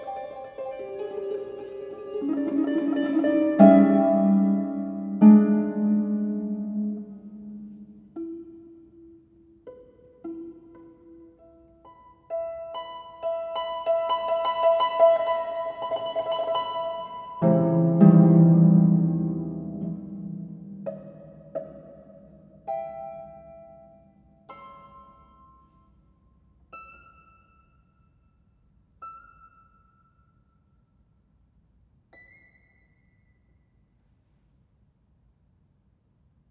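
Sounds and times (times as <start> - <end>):
solo harp bagatelles: 0.0 - 25.9.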